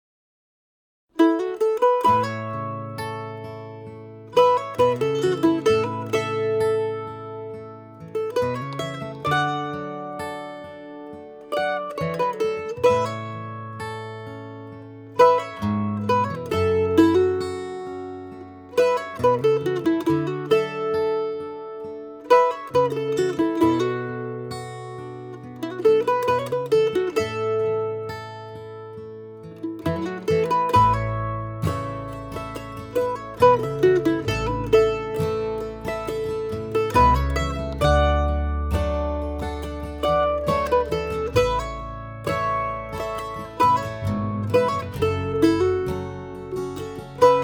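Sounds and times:
lonesome mandolin: 1.2 - 47.4.

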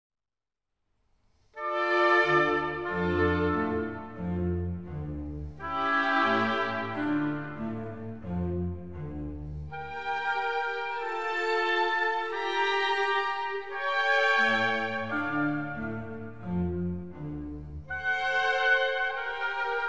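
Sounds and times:
two oboes with strings and basso continuo in D minor: 1.6 - 19.8.

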